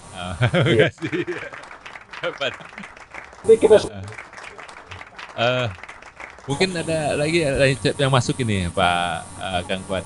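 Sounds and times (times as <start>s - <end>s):
speech: 0.2s - 4.2s, 5.4s - 5.8s, 6.4s - 10.0s
laughter: 0.2s - 7.0s
applause: 0.9s - 7.5s.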